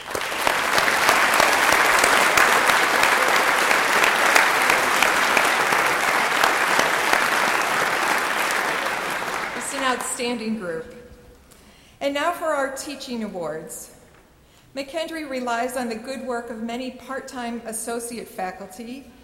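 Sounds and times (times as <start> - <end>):
audience applause for students: 0.0 - 10.2
speech: 10.2 - 11.0, 12.0 - 14.0, 14.8 - 19.2.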